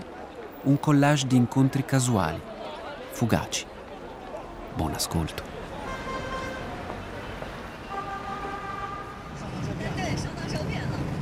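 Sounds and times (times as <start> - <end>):
road noise from a car driving on Beijing's Fifth Ring Road: 0.0 - 11.2
speech: 0.6 - 2.5, 3.2 - 3.7, 4.8 - 5.6
car horn tones: 5.8 - 9.5.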